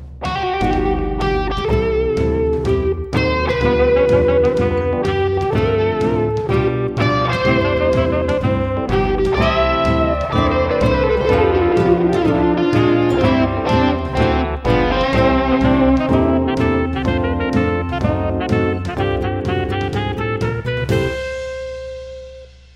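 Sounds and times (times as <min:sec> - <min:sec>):
jazzy birthday song: 0:00.2 - 0:22.7.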